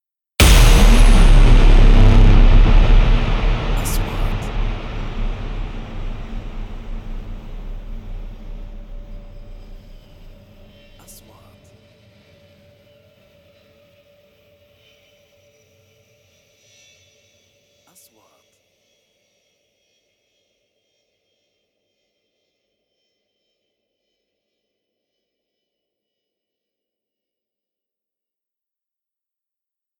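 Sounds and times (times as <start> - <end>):
3D trailer sound effects: 0.4 - 11.4.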